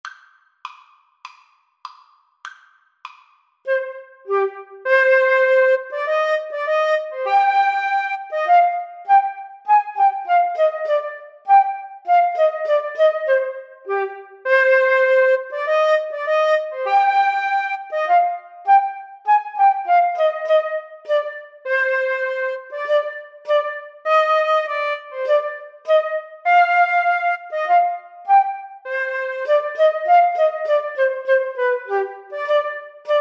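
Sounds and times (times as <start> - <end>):
flute and clarinet duet: 3.7 - 33.1.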